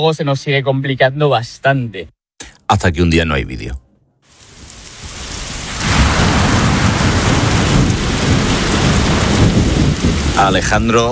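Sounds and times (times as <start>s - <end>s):
speech: 0.0s - 3.8s, 10.4s - 11.1s
rain: 4.3s - 11.1s
thunder: 4.5s - 11.0s.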